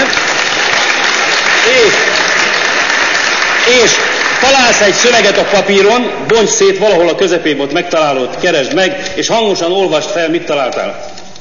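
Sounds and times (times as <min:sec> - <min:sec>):
applause: 0:00.0 - 0:06.0
speech: 0:03.8 - 0:11.1.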